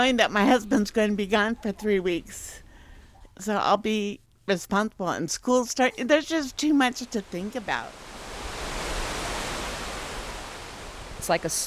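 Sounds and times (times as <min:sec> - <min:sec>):
speech: 0:00.0 - 0:02.6, 0:03.4 - 0:08.1, 0:11.2 - 0:11.6
Mendenhall River water racing behind a flood wall: 0:07.0 - 0:11.6.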